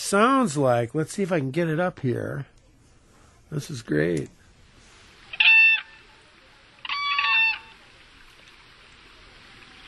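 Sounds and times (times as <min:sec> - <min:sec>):
speech: 0:00.1 - 0:02.6, 0:03.5 - 0:04.4
whooping crane alarm call: 0:05.3 - 0:06.1, 0:06.8 - 0:07.9.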